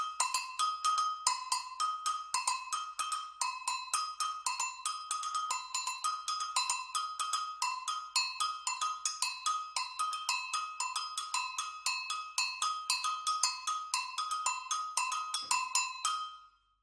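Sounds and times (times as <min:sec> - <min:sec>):
agogo bells: 0:00.0 - 0:16.5.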